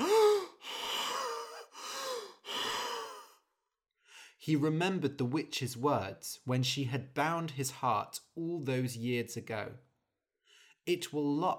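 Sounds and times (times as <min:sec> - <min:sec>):
man gasping for air: 0:00.0 - 0:04.4
speech: 0:04.4 - 0:09.9, 0:10.9 - 0:11.5.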